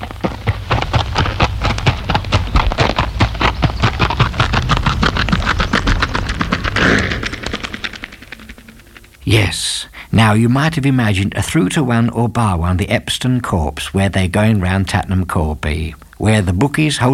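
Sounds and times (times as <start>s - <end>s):
artificial horse hoofbeats sound effect: 0.0s - 9.3s
low humming rumble: 0.0s - 12.7s
speech: 9.3s - 17.1s.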